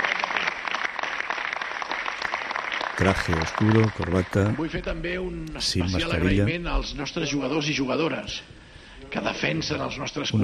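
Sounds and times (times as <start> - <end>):
audience clapping at a Barça supporters' celebration: 0.0 - 4.7
speech: 3.0 - 10.4.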